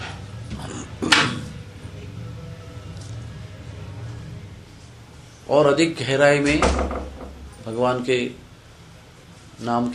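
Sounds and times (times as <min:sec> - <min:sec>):
speech: 0:05.5 - 0:08.4, 0:09.6 - 0:09.9
door closing softly: 0:06.4 - 0:07.6.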